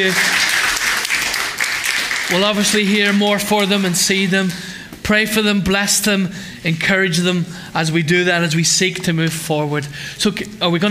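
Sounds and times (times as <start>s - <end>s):
speech: 0.0s - 0.4s, 2.3s - 10.9s
audience applause: 0.0s - 4.3s.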